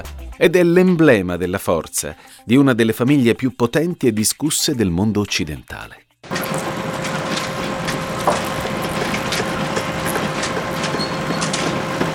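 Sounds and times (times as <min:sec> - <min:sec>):
speech: 0:00.0 - 0:06.6
oil drilling rigs: 0:06.2 - 0:12.1.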